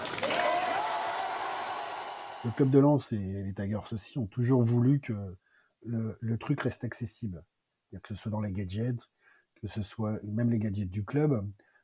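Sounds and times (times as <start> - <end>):
round of applause from a crowd: 0.0 - 2.8
speech: 2.4 - 11.7.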